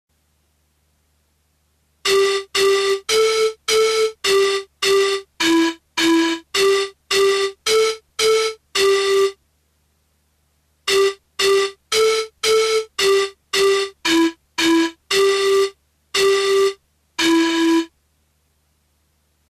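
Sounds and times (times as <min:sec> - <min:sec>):
melody: 0:02.1 - 0:09.4, 0:10.9 - 0:17.9.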